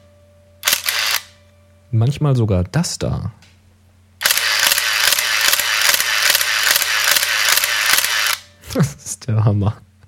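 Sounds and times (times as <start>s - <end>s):
film camera motor drive firing shutter releases: 0.6s - 1.4s, 4.2s - 8.5s
speech: 1.9s - 3.5s, 8.8s - 9.9s.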